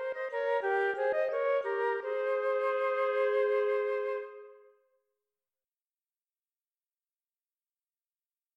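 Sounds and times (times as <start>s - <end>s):
musical duet: 0.0s - 4.7s.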